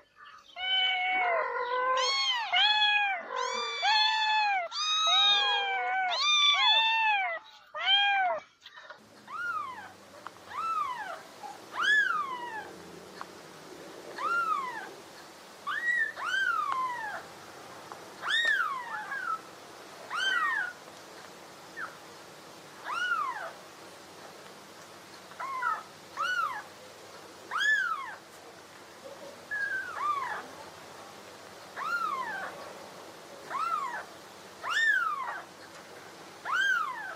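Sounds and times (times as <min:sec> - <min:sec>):
kitten meowing: 0:00.6 - 0:08.4, 0:09.2 - 0:12.7, 0:14.2 - 0:14.9, 0:15.7 - 0:17.2, 0:18.2 - 0:19.4, 0:20.1 - 0:20.8, 0:22.8 - 0:23.5, 0:27.5 - 0:28.2, 0:29.6 - 0:30.5, 0:31.8 - 0:32.5, 0:33.5 - 0:35.4, 0:36.5 - 0:37.1.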